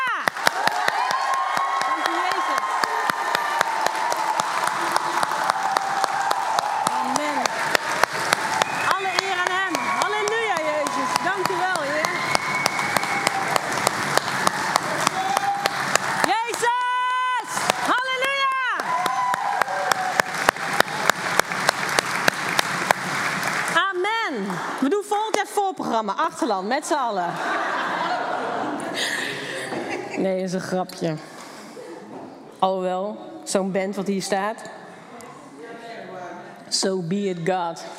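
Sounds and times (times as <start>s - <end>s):
church congregation shouting and whooping: 0.0s - 22.3s
church congregation clapping: 0.0s - 25.4s
speech: 26.3s - 27.7s, 30.2s - 31.3s, 32.6s - 34.8s, 36.8s - 37.9s
laughter: 27.2s - 30.4s.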